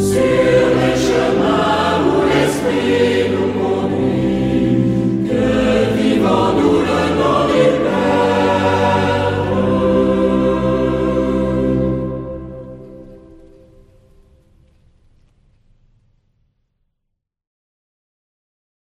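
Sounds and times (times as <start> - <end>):
vocal ensemble singing: 0.0 - 13.3.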